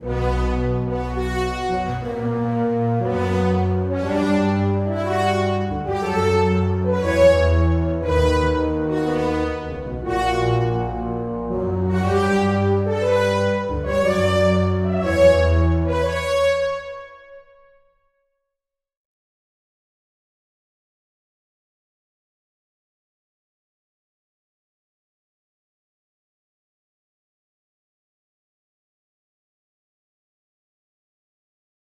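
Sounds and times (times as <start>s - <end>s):
fanfare: 0.0s - 16.9s.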